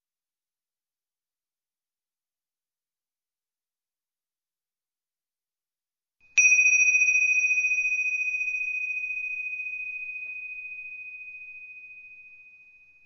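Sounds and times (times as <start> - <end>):
bells for seated meditation: 6.4 - 13.0.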